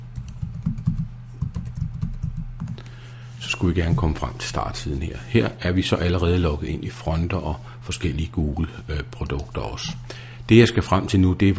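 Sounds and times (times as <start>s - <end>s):
rapid typing of an email address and password on a computer keyboard: 0.2s - 2.8s
speech: 3.4s - 11.5s.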